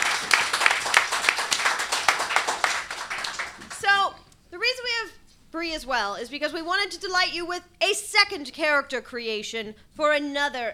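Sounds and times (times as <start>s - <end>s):
audience applause: 0.0s - 3.8s
speech: 5.6s - 10.7s.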